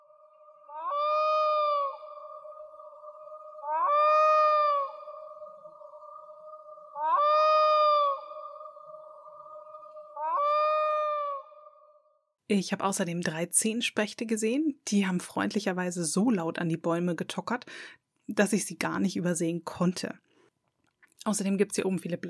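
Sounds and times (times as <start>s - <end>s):
black-throated loon wailing calls: 0.2s - 11.8s
speech: 12.5s - 20.2s, 21.2s - 22.2s.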